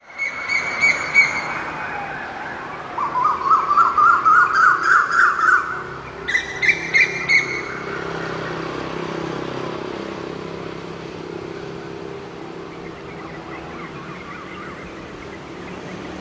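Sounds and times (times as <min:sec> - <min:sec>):
bird song of quick chirping notes in the morning: 0:00.0 - 0:01.7, 0:02.6 - 0:08.6, 0:11.8 - 0:16.1.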